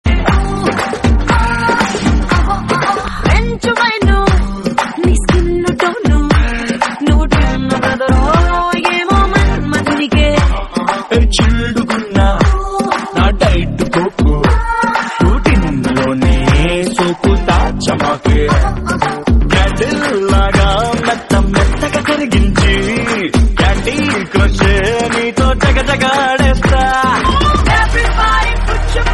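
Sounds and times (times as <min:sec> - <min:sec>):
Telugu song: 0:00.1 - 0:29.1.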